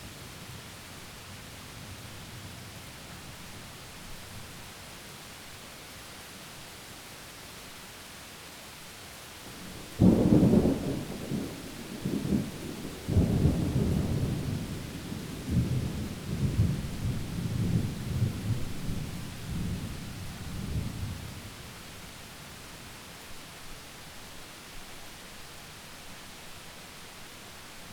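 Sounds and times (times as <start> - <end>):
thunderstorm heard from inside: 9.5 - 21.6.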